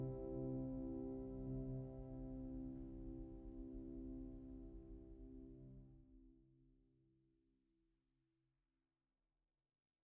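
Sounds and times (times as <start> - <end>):
piano mix: 0.0 - 5.8.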